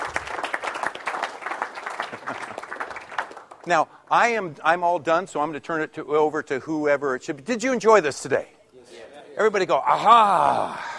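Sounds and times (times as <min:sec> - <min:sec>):
audience clapping: 0:00.0 - 0:03.8
speech: 0:03.7 - 0:08.6, 0:09.4 - 0:10.8.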